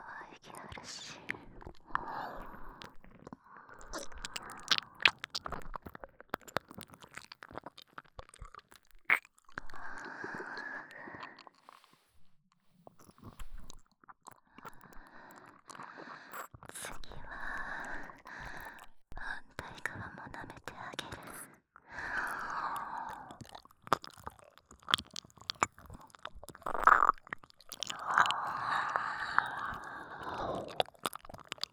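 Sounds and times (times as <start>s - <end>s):
nipple licking: 0.6s - 10.6s, 12.9s - 19.0s, 22.1s - 31.7s
ear licking: 2.0s - 9.6s, 22.2s - 31.7s.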